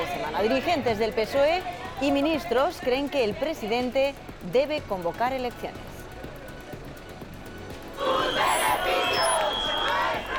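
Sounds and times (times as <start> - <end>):
speech: 0.2 - 5.9
protesters shouting outside parliament: 8.0 - 10.3.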